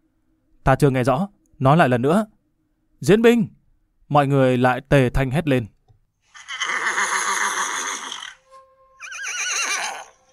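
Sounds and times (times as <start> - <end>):
speech: 0.7 - 2.4, 3.0 - 5.7
black horse neighing: 6.3 - 8.4, 9.0 - 10.2.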